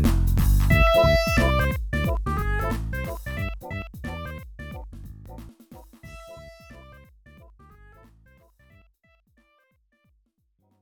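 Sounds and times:
stage background music: 0.0s - 5.4s.

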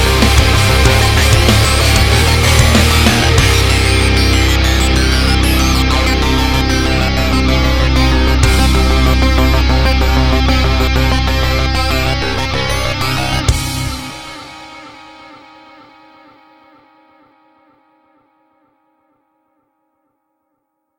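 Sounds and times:
energetic metal music: 0.0s - 15.1s.

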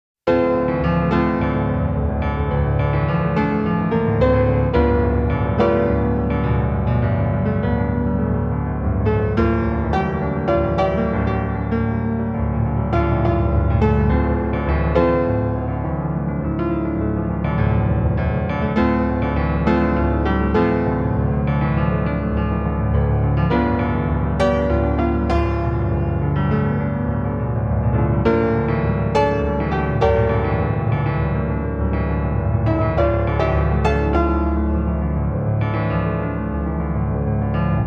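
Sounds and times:
piano music: 0.3s - 37.8s.

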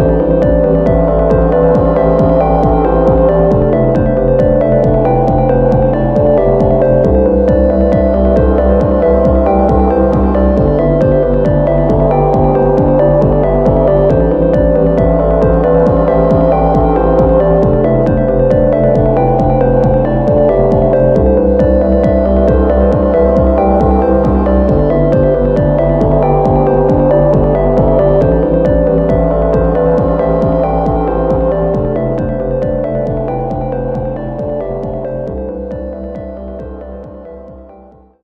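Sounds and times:
background music: 0.0s - 38.2s.

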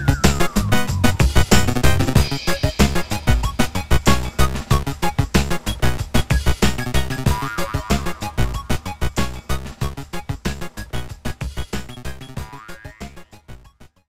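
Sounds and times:
roulette game menu music: 0.0s - 11.1s.

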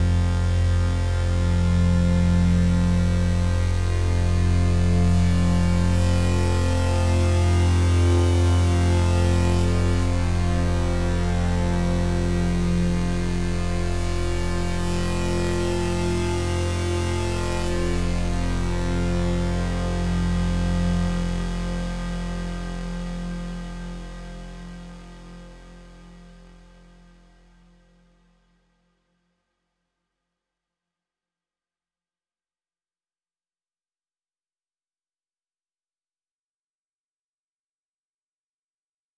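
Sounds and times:
overlay drone: 0.0s - 28.0s.

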